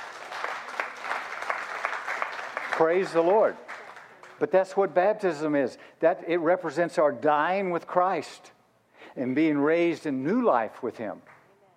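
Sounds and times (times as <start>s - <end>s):
church congregation clapping: 0.0s - 4.7s
speech: 2.8s - 3.6s, 4.4s - 8.6s, 9.2s - 11.3s.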